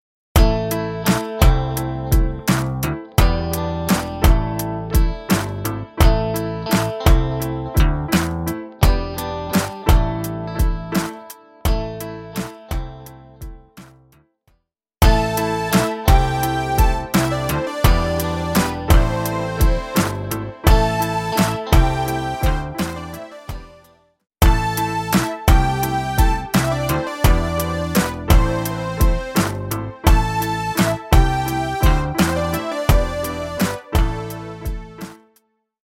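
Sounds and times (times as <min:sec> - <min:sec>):
musical instruments: 0:00.4 - 0:12.8, 0:15.0 - 0:35.4.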